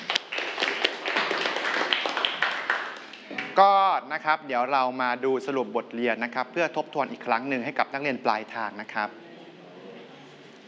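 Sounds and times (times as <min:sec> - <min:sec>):
students clapping hands: 0:00.0 - 0:03.7
speech: 0:03.6 - 0:09.3.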